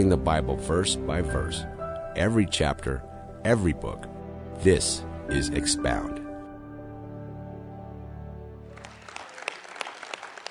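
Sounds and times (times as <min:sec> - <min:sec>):
speech: 0:00.0 - 0:06.2
sustained musical chord: 0:00.0 - 0:08.9
audience applause: 0:08.7 - 0:10.5.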